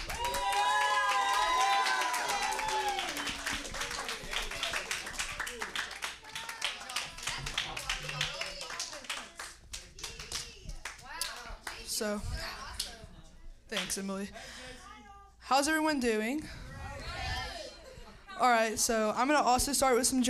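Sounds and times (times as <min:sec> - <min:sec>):
audience round of applause: 0:00.0 - 0:10.5
speech: 0:12.0 - 0:12.5, 0:13.7 - 0:14.6, 0:15.5 - 0:16.6, 0:18.4 - 0:20.2.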